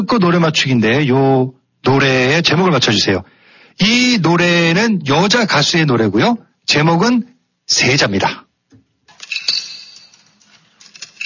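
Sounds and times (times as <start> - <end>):
speech: 0.0 - 8.4
coins inserted into a public payphone: 9.1 - 11.2.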